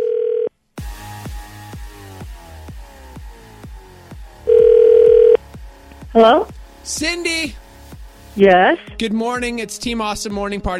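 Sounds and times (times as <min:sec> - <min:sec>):
telephone dial tone: 0:00.0 - 0:00.5, 0:04.5 - 0:05.4
telephone ringing tone: 0:04.5 - 0:05.4
speech: 0:06.2 - 0:07.6, 0:08.4 - 0:10.7.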